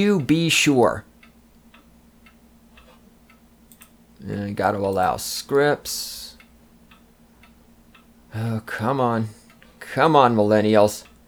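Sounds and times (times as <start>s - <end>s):
speech: 0.0s - 1.1s, 4.2s - 6.2s, 8.3s - 11.1s
computer keyboard clicking: 3.7s - 4.0s.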